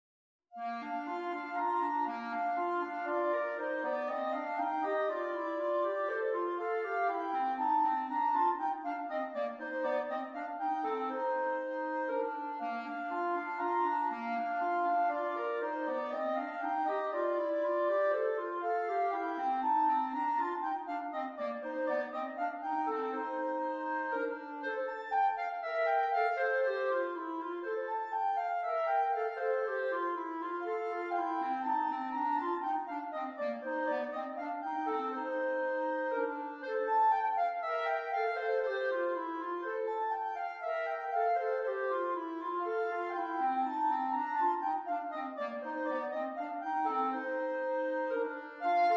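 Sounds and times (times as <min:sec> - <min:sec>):
clarinet duet: 0:00.6 - 0:48.9.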